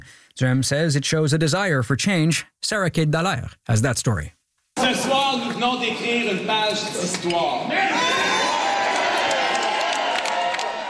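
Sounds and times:
speech: 0.1s - 8.2s
ecstatic crowd cheering at a political rally on election night: 7.7s - 10.8s.

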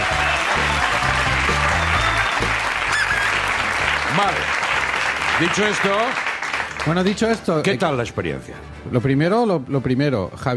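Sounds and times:
crowd applause: 0.0s - 7.4s
speech: 4.2s - 4.6s, 5.4s - 10.5s.

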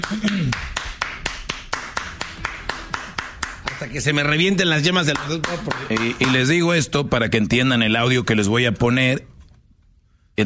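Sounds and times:
speech: 0.0s - 0.8s, 3.8s - 9.3s
steady sharp hand claps: 0.0s - 4.2s, 4.9s - 6.6s.

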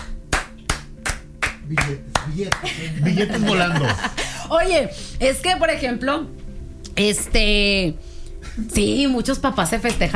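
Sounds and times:
sharp hand claps: 0.0s - 2.7s
speech: 1.7s - 6.4s, 7.0s - 10.1s
laughter: 2.4s - 4.5s.

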